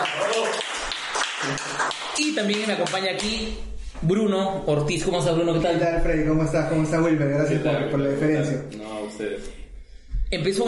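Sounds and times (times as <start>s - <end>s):
applause for guest: 0.0s - 3.4s
speech: 1.5s - 9.6s, 10.3s - 10.6s.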